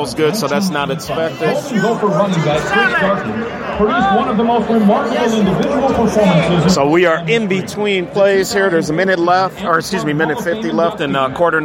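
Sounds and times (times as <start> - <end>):
speech: 0.0 - 11.6
stadium crowd chatter at a football game: 0.0 - 11.6.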